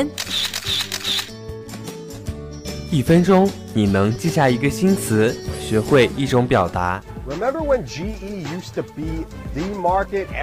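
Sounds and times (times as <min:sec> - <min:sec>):
speech: 0:00.0 - 0:00.5, 0:02.9 - 0:10.4
camera shutter click: 0:00.0 - 0:01.4.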